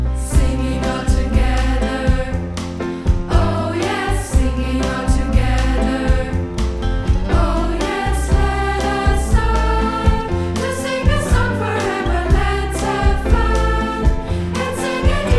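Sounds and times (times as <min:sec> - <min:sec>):
people singing together: 0:00.2 - 0:15.3.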